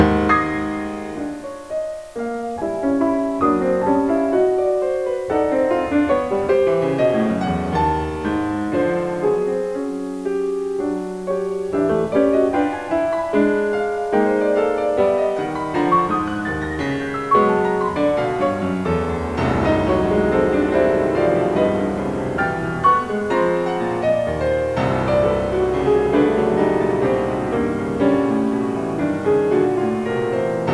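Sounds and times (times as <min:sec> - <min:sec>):
piano: 0:00.0 - 0:30.7.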